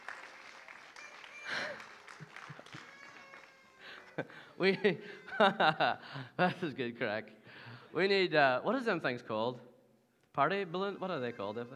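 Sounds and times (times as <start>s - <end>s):
indoor crowd cheering and clapping: 0.0s - 4.5s
laughter: 1.2s - 6.7s
speech: 4.2s - 9.7s, 10.4s - 11.7s.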